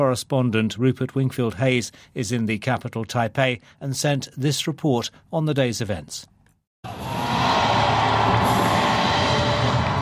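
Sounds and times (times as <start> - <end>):
speech: 0.0 - 7.2
huge crowd cheering at political rally in central Taipei: 6.9 - 10.0.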